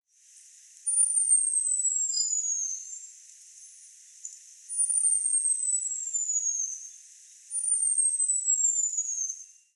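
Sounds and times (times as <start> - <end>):
Colibri Chispita Volcanera hummingbird Selasphorus flammula: 0.8 - 9.7.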